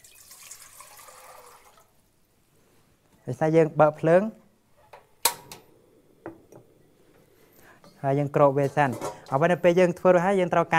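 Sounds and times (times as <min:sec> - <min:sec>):
700 ml of water poured into a cooking pot for a vegetable dish: 0:00.0 - 0:02.0
speech: 0:03.3 - 0:04.4, 0:08.0 - 0:10.7.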